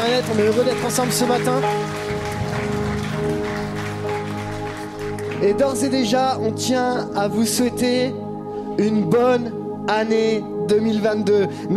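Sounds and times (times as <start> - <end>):
crowd applause: 0.0 - 5.9
speech: 0.1 - 2.3, 5.4 - 8.2, 8.8 - 11.7.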